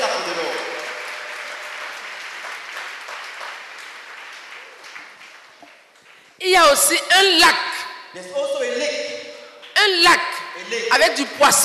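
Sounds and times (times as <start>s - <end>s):
congregation clapping in acclamation of the Lord: 0.0s - 6.4s, 9.6s - 9.8s
speech: 6.5s - 9.0s, 9.8s - 11.6s.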